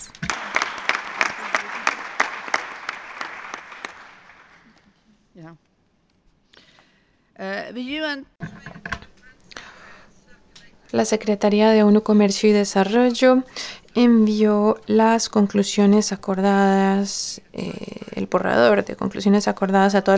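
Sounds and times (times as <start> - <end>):
audience applause: 0.0 - 4.8
speech: 7.7 - 8.5, 10.9 - 20.1.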